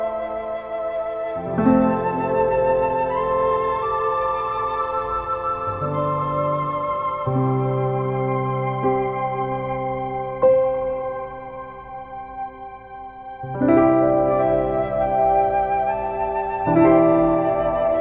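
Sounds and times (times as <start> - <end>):
relaxing music: 0.0 - 17.9.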